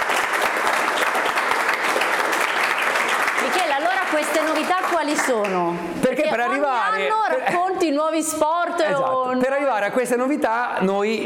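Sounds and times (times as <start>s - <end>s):
applause: 0.0s - 5.7s
speech: 4.2s - 11.2s.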